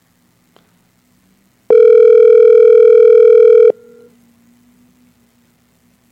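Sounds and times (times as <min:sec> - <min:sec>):
telephone tone signalling the called line is busy on another call: 0:01.7 - 0:03.9.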